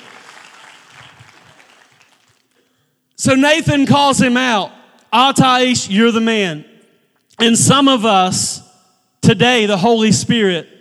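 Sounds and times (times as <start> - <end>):
audience crowd clapping: 0.0 - 2.8
speech: 3.2 - 6.7, 7.4 - 8.6, 9.2 - 10.7.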